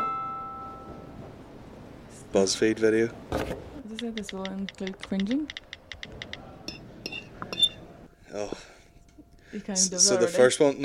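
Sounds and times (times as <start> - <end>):
low hum: 0.0 - 10.8
speech: 2.3 - 5.6, 8.4 - 8.7, 9.5 - 10.8
cutlery scraping across a plate: 6.2 - 7.8.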